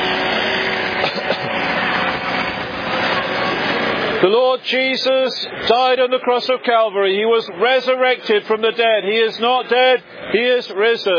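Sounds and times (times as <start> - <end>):
vacuum cleaner running: 0.0 - 4.3
speech: 4.2 - 11.1.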